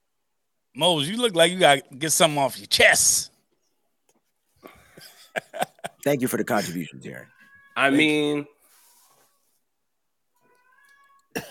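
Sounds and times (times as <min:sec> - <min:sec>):
speech: 0:00.8 - 0:03.3, 0:06.0 - 0:08.6
laughter: 0:04.7 - 0:07.0
cat meowing: 0:06.6 - 0:08.2, 0:10.4 - 0:11.4.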